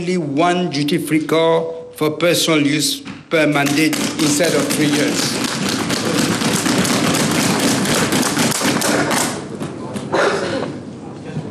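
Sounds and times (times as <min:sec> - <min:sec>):
speech: 0:00.0 - 0:05.6
members of parliament clapping: 0:03.6 - 0:10.1.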